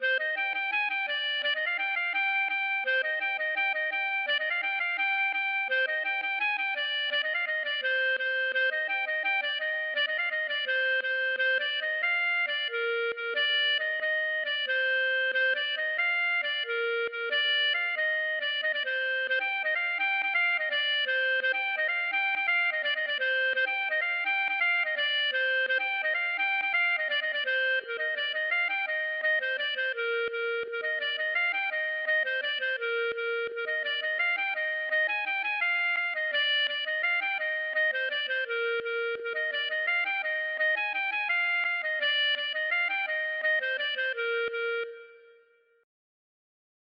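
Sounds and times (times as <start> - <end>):
gavotte: 0.0 - 45.6.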